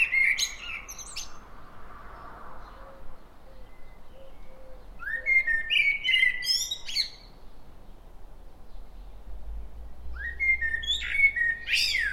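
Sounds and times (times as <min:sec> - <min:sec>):
common blackbird singing: 0:00.0 - 0:01.4, 0:02.6 - 0:08.0, 0:10.0 - 0:12.1.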